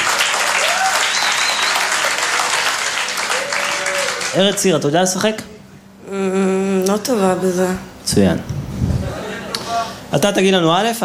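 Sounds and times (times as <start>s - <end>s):
audience applause for a performer: 0.0s - 4.7s
whistles: 0.9s - 2.0s
speech: 4.4s - 5.5s, 6.1s - 8.6s, 10.1s - 11.0s.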